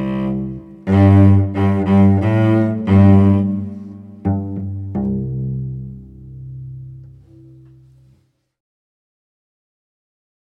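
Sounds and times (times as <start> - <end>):
cello: 0.0 - 8.3.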